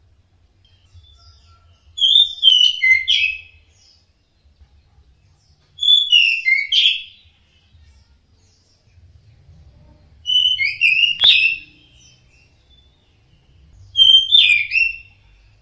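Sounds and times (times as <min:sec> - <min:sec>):
red-throated finch singing ngeplong: 0:00.6 - 0:15.6.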